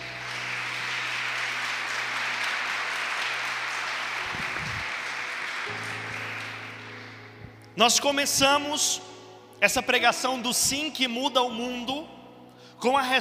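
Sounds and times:
audience applauding: 0.0 - 7.4
speech: 7.8 - 12.2, 12.8 - 13.1.

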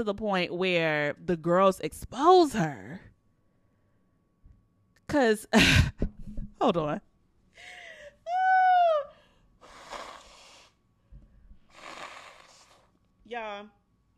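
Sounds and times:
speech: 0.0 - 3.1, 5.1 - 7.8, 13.3 - 13.8
person blowing nose into microphone: 9.6 - 10.8, 11.7 - 12.9.

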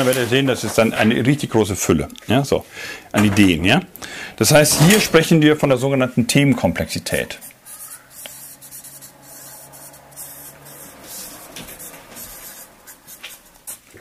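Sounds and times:
speech: 0.0 - 7.5
pen scratching as a book symbol is drawn: 7.4 - 13.9.

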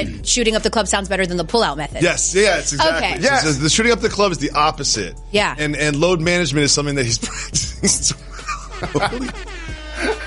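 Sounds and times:
speech: 0.0 - 9.6
laughter: 2.6 - 4.0, 7.0 - 10.2
air horn sound effect: 8.8 - 10.2.

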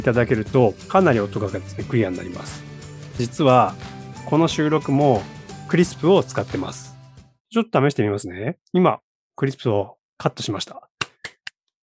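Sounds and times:
speech: 0.0 - 6.9, 7.5 - 10.9
hands clapping: 3.5 - 5.6.

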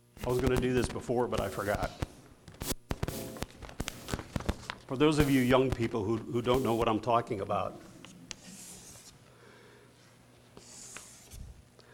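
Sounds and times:
speech: 0.2 - 2.1, 4.9 - 7.9
drawing strokes on paper: 0.2 - 4.1, 6.5 - 6.9, 8.3 - 9.1, 10.6 - 11.4.

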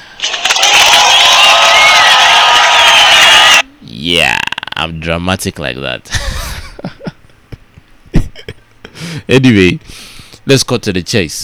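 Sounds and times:
audience applause: 0.2 - 3.6
crowd cheering: 0.2 - 3.6
speech: 4.0 - 6.2, 9.2 - 11.4
laughter: 6.1 - 8.6.

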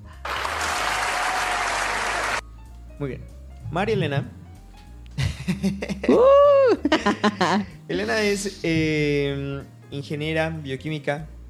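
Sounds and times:
applause from a small group: 0.1 - 2.4
speech: 3.0 - 4.4, 5.6 - 11.4
laughter: 5.2 - 7.8.

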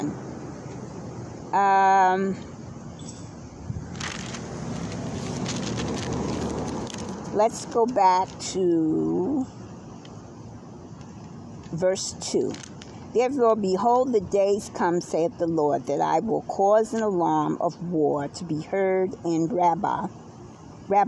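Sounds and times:
cars on an outdoor street: 0.0 - 21.0
speech: 1.5 - 2.5, 7.4 - 9.6, 11.7 - 20.2, 20.9 - 21.0.

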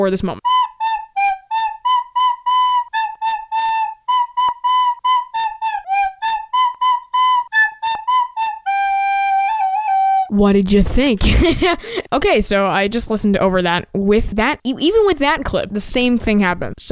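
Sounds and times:
speech: 0.0 - 0.5, 10.4 - 16.9
recorder playing a nursery tune: 0.4 - 10.4.

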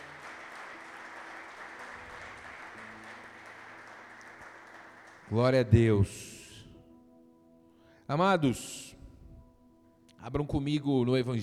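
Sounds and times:
audience applauding: 0.0 - 5.8
speech: 5.3 - 6.3, 8.1 - 9.0, 10.2 - 11.4.

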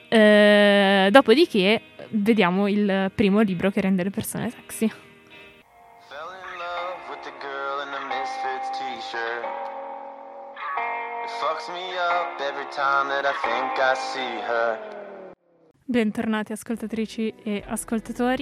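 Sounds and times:
speech: 0.1 - 0.4, 1.1 - 5.1, 11.7 - 15.1, 15.9 - 18.3
song: 5.7 - 15.4.

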